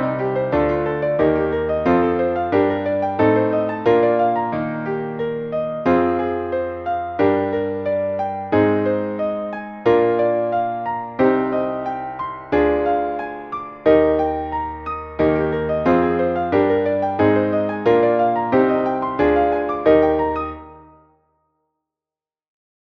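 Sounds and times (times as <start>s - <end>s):
piano arpeggio warm-ups in major keys: 0.0s - 21.1s.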